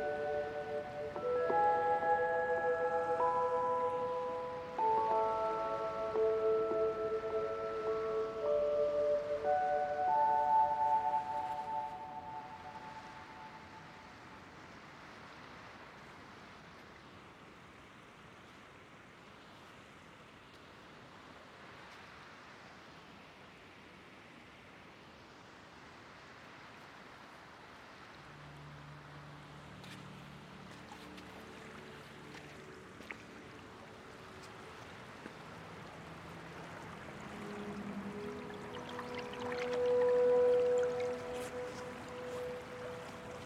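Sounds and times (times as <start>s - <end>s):
clear sustained tones ringing over the water: 0.0s - 14.0s, 36.6s - 43.4s
surf in a seaside cove on the Oregon coast: 0.0s - 17.1s, 27.3s - 43.4s.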